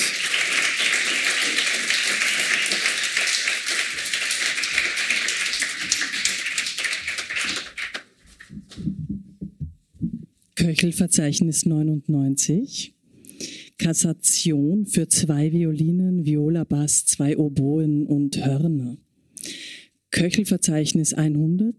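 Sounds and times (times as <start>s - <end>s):
audience applause: 0.0s - 8.5s
speech: 10.6s - 13.0s, 13.8s - 19.1s, 20.2s - 21.7s.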